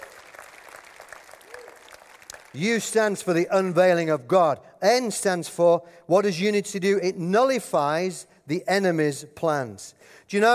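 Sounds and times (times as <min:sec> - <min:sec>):
audience applause: 0:00.0 - 0:02.6
speech: 0:02.5 - 0:10.5.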